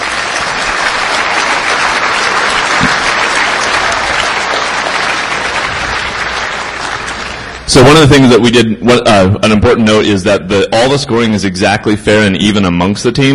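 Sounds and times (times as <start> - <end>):
sustained applause from a large audience: 0.0 - 7.7
speech: 7.8 - 13.3.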